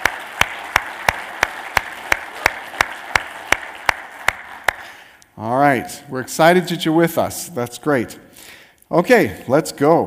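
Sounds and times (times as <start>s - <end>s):
audience applause: 0.0s - 5.1s
speech: 5.4s - 10.0s.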